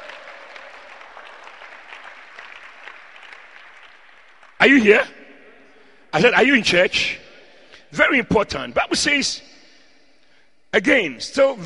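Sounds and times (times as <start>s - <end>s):
crowd clapping: 0.0s - 5.0s
speech: 4.6s - 5.2s, 6.1s - 7.2s, 7.9s - 9.5s, 10.8s - 11.6s.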